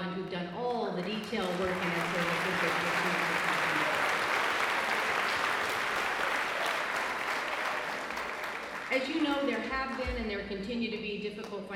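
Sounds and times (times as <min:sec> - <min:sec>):
speech: 0:01.0 - 0:03.0, 0:09.0 - 0:11.7
audience applause: 0:01.1 - 0:10.0.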